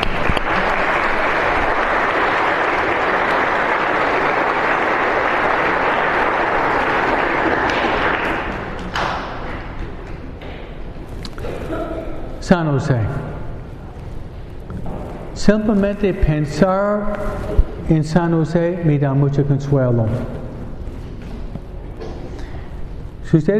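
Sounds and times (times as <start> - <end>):
audience applause: 0.0 - 9.8
speech: 12.5 - 13.3, 15.4 - 20.4, 23.3 - 23.5.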